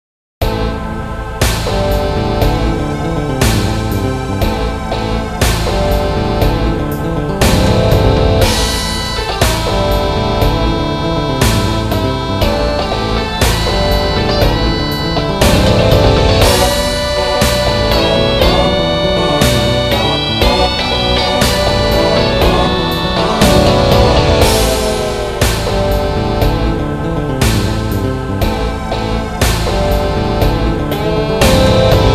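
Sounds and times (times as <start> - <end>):
guitar: 0.4 - 32.1.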